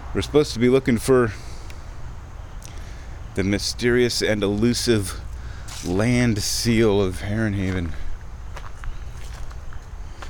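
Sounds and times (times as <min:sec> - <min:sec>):
outdoor noise: 0:00.0 - 0:10.2
speech: 0:00.1 - 0:01.5, 0:03.4 - 0:08.0
footsteps walking through a forest: 0:05.2 - 0:10.2.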